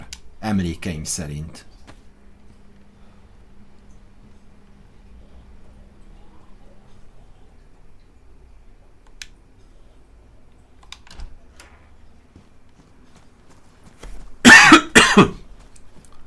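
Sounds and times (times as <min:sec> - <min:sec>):
speech: 0:00.4 - 0:01.7
person coughing for a video game character: 0:14.4 - 0:15.5.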